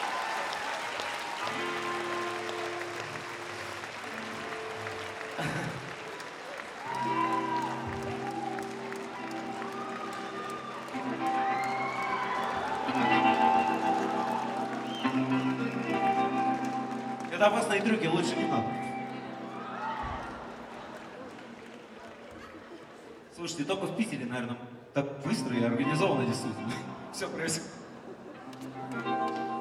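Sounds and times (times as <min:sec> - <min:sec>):
concert audience in St Petersburg applauding: 0:00.0 - 0:23.2, 0:28.0 - 0:29.5
speech: 0:17.4 - 0:18.8, 0:23.5 - 0:27.7.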